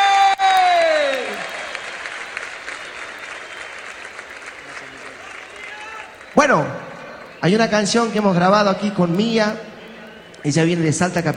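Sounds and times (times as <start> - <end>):
audience applause and cheering: 0.0 - 11.3
speech: 6.4 - 6.8, 7.4 - 9.7, 10.4 - 11.3.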